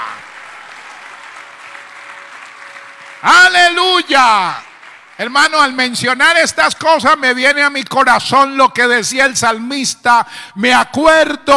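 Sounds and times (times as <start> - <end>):
audience applause: 0.0 - 6.8
speech: 3.2 - 11.5.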